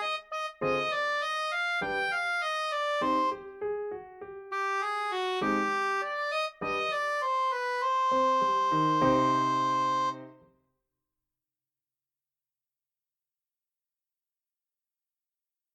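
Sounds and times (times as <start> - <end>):
soprano saxophone: 0.0 - 3.6, 4.5 - 10.4.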